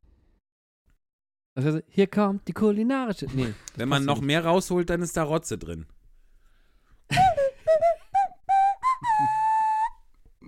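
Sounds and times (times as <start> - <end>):
speech: 1.6 - 6.0
nose flute playing a short breathy tune: 7.1 - 10.0.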